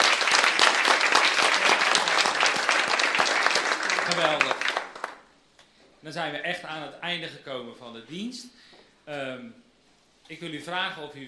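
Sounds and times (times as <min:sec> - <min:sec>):
audience applause: 0:00.0 - 0:05.3
speech: 0:04.1 - 0:04.5, 0:06.0 - 0:09.6, 0:10.3 - 0:11.2.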